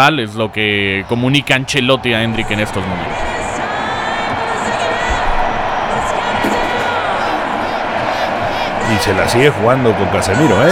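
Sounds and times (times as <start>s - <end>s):
speech: 0.0s - 3.3s, 8.9s - 10.7s
stadium crowd shouting for a player: 0.0s - 10.7s.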